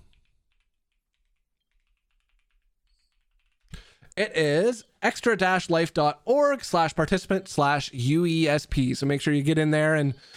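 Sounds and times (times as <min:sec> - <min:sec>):
typing a web link on a computer keyboard: 0:00.0 - 0:03.9
speech: 0:04.2 - 0:10.3.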